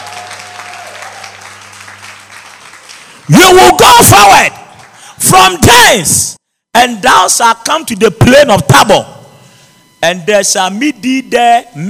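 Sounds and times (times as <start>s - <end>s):
audience clapping: 0.0s - 3.3s, 4.7s - 5.1s
speech: 3.3s - 4.6s, 5.2s - 9.1s, 10.0s - 11.8s.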